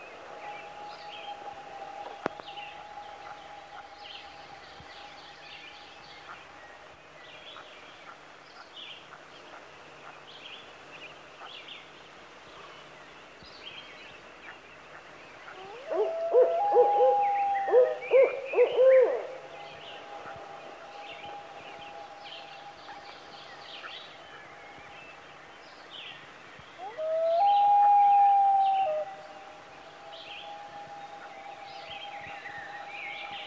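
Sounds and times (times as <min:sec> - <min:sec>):
morning songbird chorus: 0:00.0 - 0:33.4
loon wails: 0:15.6 - 0:19.4, 0:26.8 - 0:29.6.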